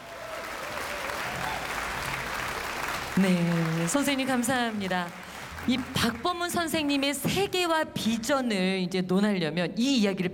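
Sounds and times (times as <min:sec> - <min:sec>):
audience applause: 0:00.0 - 0:07.2
speech: 0:03.2 - 0:10.3.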